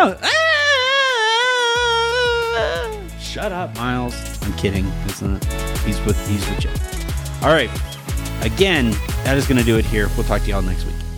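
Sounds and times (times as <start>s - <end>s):
speech: 0.0s - 0.4s, 3.4s - 11.0s
child screaming: 0.0s - 3.1s
low rhythmic thumps: 1.8s - 11.1s.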